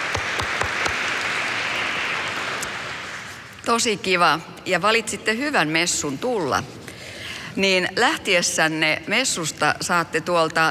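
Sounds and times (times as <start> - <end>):
audience applause in church: 0.0 - 3.4
speech: 3.7 - 6.8, 7.6 - 10.6.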